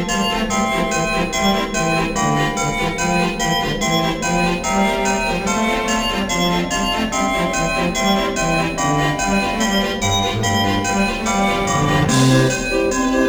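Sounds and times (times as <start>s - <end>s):
Christmas bells ringing: 0.1s - 13.2s
ambience: 9.8s - 13.2s.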